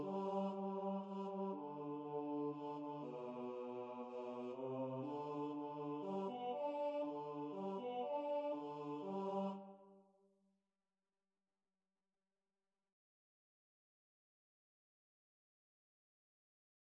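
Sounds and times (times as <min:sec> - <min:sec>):
bass choir singing: 0:00.0 - 0:09.8.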